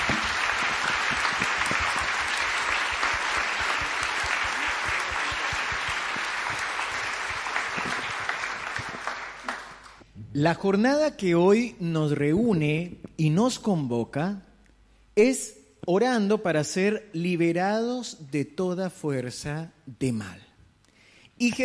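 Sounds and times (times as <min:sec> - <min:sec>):
audience applause: 0:00.0 - 0:10.0
speech: 0:10.4 - 0:14.5, 0:15.2 - 0:20.4, 0:21.4 - 0:21.6.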